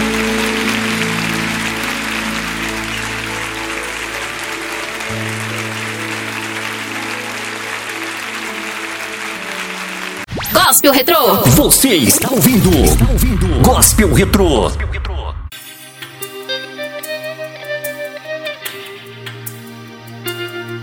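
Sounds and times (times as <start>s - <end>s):
congregation applauding at a gospel church service: 0.0s - 12.9s
speech: 10.8s - 14.9s.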